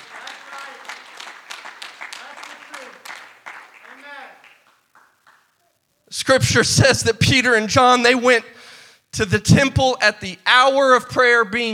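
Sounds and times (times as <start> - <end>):
people clapping hands: 0.0 - 5.7
speech: 6.1 - 8.5, 9.2 - 11.7.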